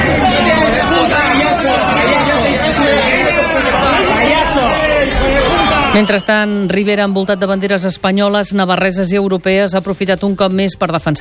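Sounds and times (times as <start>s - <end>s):
sirens: 0.0s - 7.8s
protest crowd shouting: 0.0s - 8.2s
protest whistles blowing: 4.8s - 6.7s
speech: 6.0s - 11.1s.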